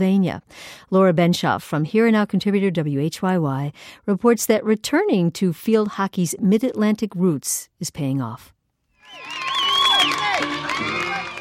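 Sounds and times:
speech: 0.0s - 8.6s
spectators cheering at a field hockey match: 9.0s - 11.3s.

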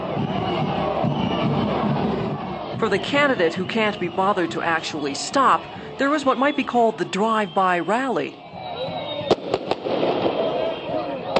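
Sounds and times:
cheering: 0.0s - 11.3s
rowdy crowd hubbub at a Bolivian presidential debate in La Paz: 0.0s - 11.3s
speech: 0.2s - 0.4s, 2.8s - 8.4s.

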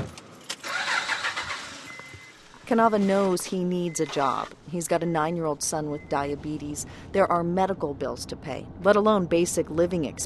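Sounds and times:
car engine starting for a drive: 0.0s - 4.6s
speech: 2.7s - 10.2s.

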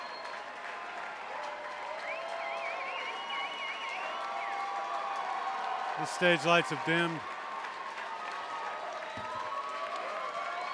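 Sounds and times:
shrill wavering whistle: 0.0s - 0.4s, 2.0s - 4.6s
concert crowd applause and cheering: 0.0s - 10.7s
speech: 6.0s - 7.3s.

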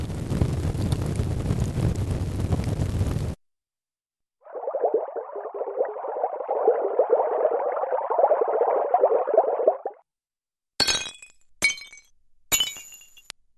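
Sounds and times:
computer-generated fire: 0.0s - 3.4s
computer-generated bubbling brook: 4.4s - 10.0s.

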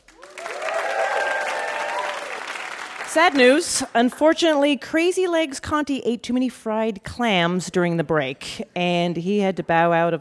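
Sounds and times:
live audience applause at a puzzle quiz show: 0.0s - 3.6s
speech: 3.1s - 10.1s.

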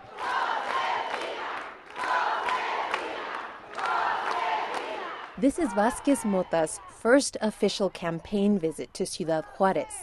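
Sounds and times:
claps: 0.0s - 6.1s
large crowd of women cheering and shouting: 0.0s - 7.0s
speech: 5.4s - 10.0s.

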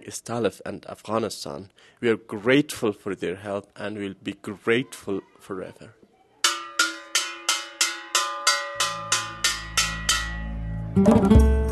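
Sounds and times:
speech: 0.1s - 6.0s, 11.0s - 11.6s
bell ringing: 6.5s - 11.5s.

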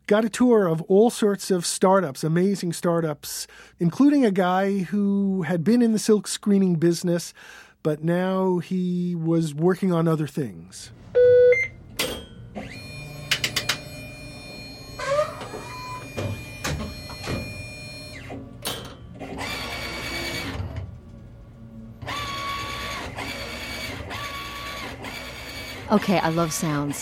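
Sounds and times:
speech: 0.1s - 11.4s, 25.9s - 27.0s
direct-to-garment printing machine running: 12.6s - 18.4s, 19.1s - 20.9s, 22.0s - 27.0s.

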